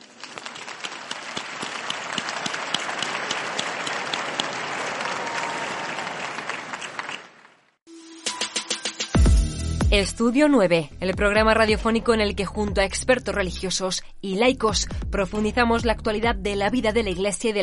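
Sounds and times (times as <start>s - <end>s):
crowd applause: 0.0s - 7.8s
speech: 10.0s - 17.6s.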